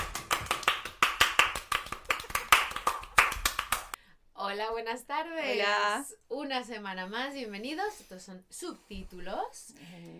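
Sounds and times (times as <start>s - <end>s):
hand clapping: 0.0s - 4.0s
speech: 4.6s - 10.1s.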